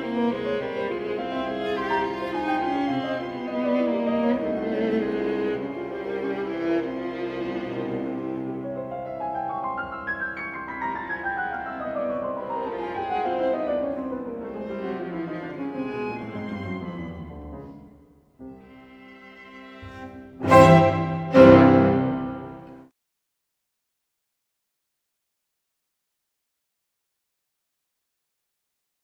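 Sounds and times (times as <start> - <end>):
piano: 0.0 - 22.9.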